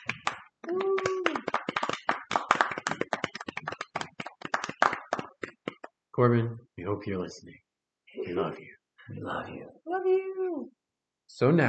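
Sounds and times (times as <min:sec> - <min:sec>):
small group clapping: 0:00.0 - 0:06.1
person cheering: 0:00.6 - 0:01.8
speech: 0:06.2 - 0:07.6, 0:08.2 - 0:10.2, 0:11.3 - 0:11.6.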